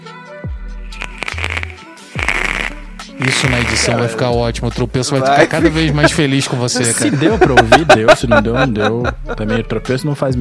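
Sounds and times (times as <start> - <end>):
vape atomizer crackling and sizzling as it boils liquid: 0.8 - 4.2
speech: 3.2 - 10.3
laughter: 5.3 - 9.9.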